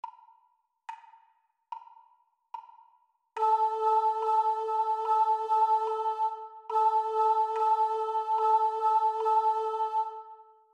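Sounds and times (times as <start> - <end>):
high rhythm pattern: 3.4 - 10.2.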